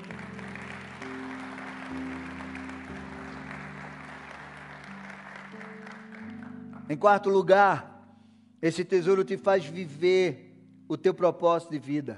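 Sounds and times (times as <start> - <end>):
audience applauding: 0.0 - 6.9
sustained low keyboard chords: 0.0 - 12.1
speech: 6.9 - 7.9, 8.6 - 12.1.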